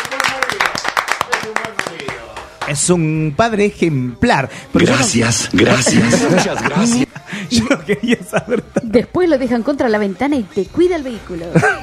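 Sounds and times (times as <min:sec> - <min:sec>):
audience clapping: 0:00.0 - 0:02.9
speech: 0:02.7 - 0:11.8
laughter: 0:05.6 - 0:09.2, 0:11.4 - 0:11.8.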